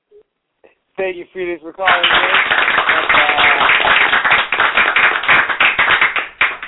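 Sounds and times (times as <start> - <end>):
speech: 1.0 - 4.1
audience clapping: 1.8 - 6.6.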